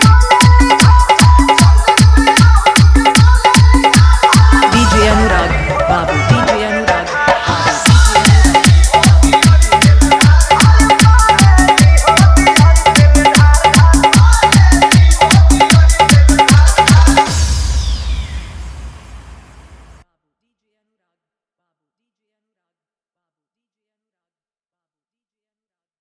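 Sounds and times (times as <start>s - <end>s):
Chhath Puja dholki bass dance music: 0.0s - 18.8s.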